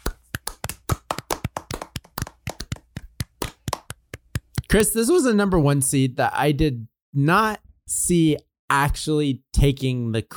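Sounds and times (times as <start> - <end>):
people clapping: 0.0 - 4.8
speech: 4.7 - 10.3.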